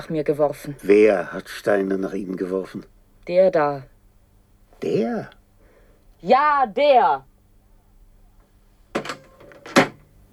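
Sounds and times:
speech: 0.0s - 3.9s, 4.8s - 5.4s, 6.2s - 7.3s
door slamming shut: 9.0s - 10.1s.

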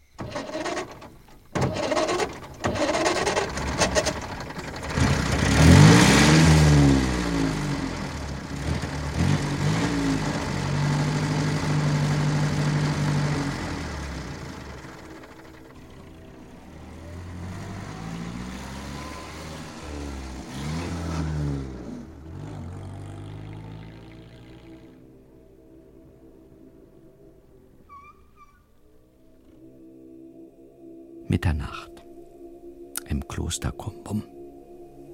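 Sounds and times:
car engine starting, revving and driving off: 0.0s - 25.4s
speech: 31.4s - 31.9s, 33.2s - 34.3s.

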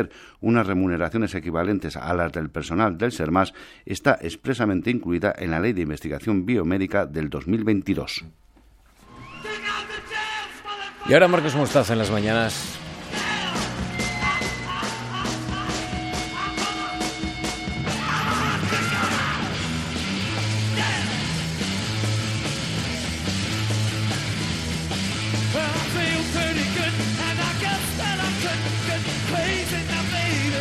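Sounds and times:
speech: 0.0s - 8.4s, 11.1s - 12.8s
rock record opening: 9.0s - 30.5s
person shouting battle cry on rock record: 18.0s - 19.6s.

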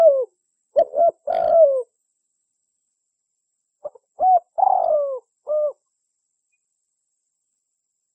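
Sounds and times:
Spotted Dove cooing as a lure call: 0.0s - 1.9s, 3.8s - 5.9s.

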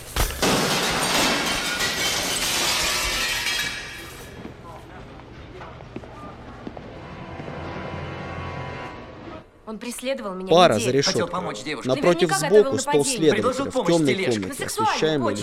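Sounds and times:
shop window glass shattering as a pushed shopping cart crashes into it: 0.0s - 4.3s
speech: 9.7s - 15.4s.

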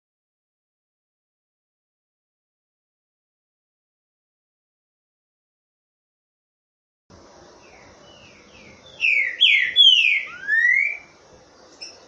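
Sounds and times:
steady hiss: 7.1s - 12.0s.

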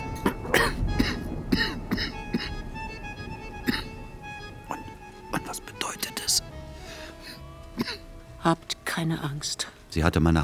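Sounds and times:
coughing after lighting a cigarette: 0.2s - 4.1s, 7.2s - 8.2s
speech: 8.5s - 10.4s.

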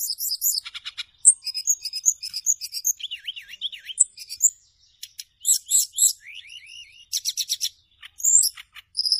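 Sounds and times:
bird song: 0.0s - 9.1s.

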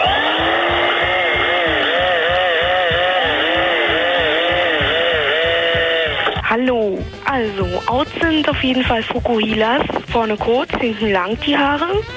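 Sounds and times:
electric drill whining: 0.0s - 6.4s
vacuum cleaner roaring: 0.0s - 6.4s
speech: 7.8s - 12.1s.

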